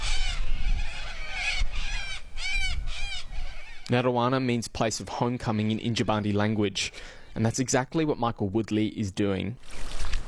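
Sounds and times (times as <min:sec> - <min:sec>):
little corellas calling: 0:00.0 - 0:04.4, 0:05.0 - 0:07.2
speech: 0:03.9 - 0:09.9.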